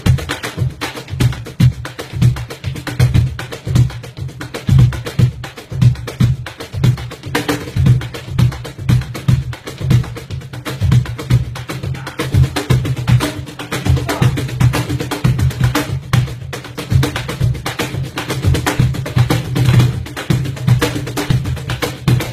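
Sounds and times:
cajon drumming: 0:00.0 - 0:22.3.

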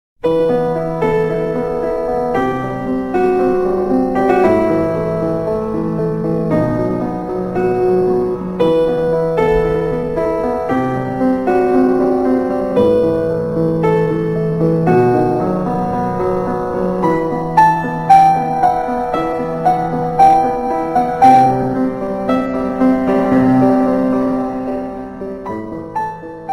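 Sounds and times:
piano: 0:00.2 - 0:26.5.

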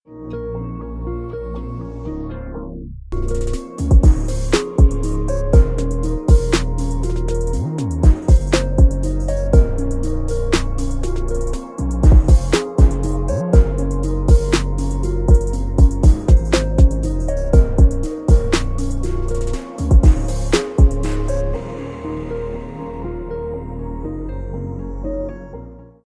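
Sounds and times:
chill and lax hip hop beat: 0:03.2 - 0:22.2.

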